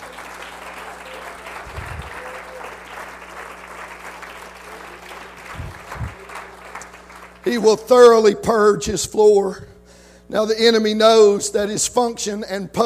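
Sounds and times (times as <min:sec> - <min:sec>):
audience clapping hands: 0:00.0 - 0:07.8
speech: 0:07.4 - 0:09.7, 0:10.3 - 0:12.8.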